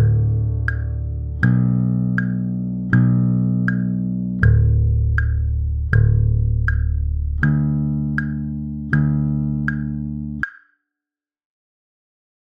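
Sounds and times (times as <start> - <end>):
bass playing D major pentatonic scale exercise: 0.0 - 10.4.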